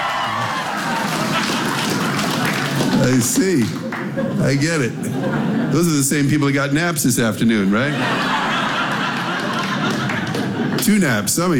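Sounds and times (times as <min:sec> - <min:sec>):
crowd applauding and cheering: 0:00.0 - 0:04.2, 0:08.2 - 0:10.9
laughter: 0:00.3 - 0:06.5, 0:07.6 - 0:11.3
speech: 0:03.0 - 0:08.4, 0:10.8 - 0:11.5.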